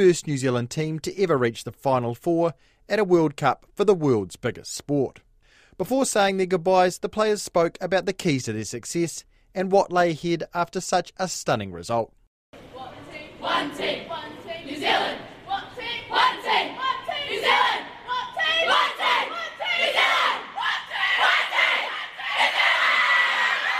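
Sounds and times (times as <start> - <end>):
speech: 0.0 - 5.2, 5.8 - 15.3
women's football team celebratory chant: 12.8 - 23.7.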